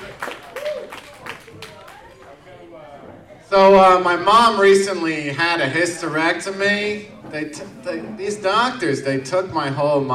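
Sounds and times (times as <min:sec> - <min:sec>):
audience applause for a comedian: 0:00.0 - 0:02.4
speech: 0:03.5 - 0:10.1.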